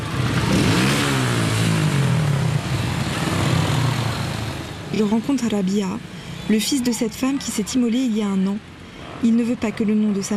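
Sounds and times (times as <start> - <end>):
mopeds on the coast: 0.0 - 10.3
speech: 5.0 - 10.3.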